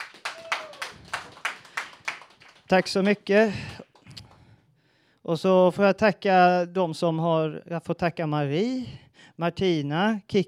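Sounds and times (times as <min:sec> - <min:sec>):
audience hand claps at a live talk event: 0:00.0 - 0:04.5
speech: 0:02.7 - 0:03.8, 0:05.3 - 0:10.4.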